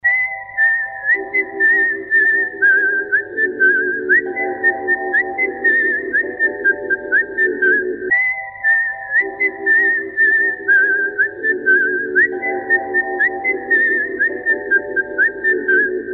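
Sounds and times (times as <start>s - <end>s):
whistling: 0.0s - 16.1s.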